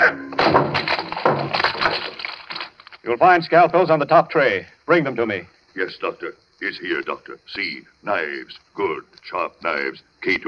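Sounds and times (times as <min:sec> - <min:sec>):
tall white locked cabinet being smashed open: 0:00.3 - 0:02.9
rattling debris: 0:00.3 - 0:03.1
speech: 0:03.1 - 0:10.4.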